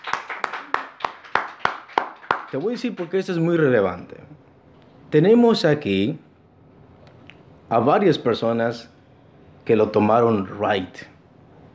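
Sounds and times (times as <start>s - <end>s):
audience clapping hands in unison: 0.0s - 3.4s
speech: 2.5s - 4.4s, 5.1s - 6.2s, 7.7s - 8.9s, 9.6s - 11.1s.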